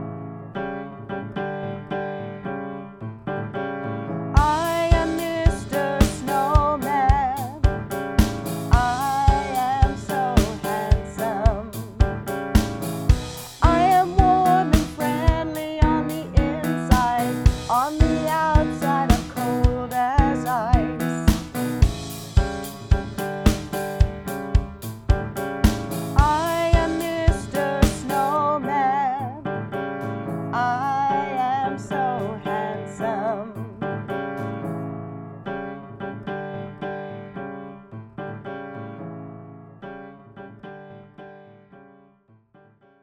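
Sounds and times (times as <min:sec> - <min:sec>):
vocals: 0:04.4 - 0:34.2.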